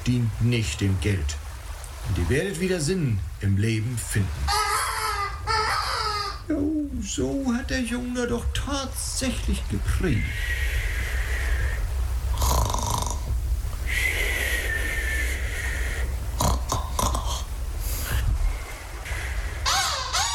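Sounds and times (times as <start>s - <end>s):
low constant rumble: 0.0s - 20.3s
speech: 0.1s - 1.4s, 2.0s - 4.6s, 6.5s - 10.6s
tired boy snoring: 12.3s - 13.3s, 16.4s - 18.2s.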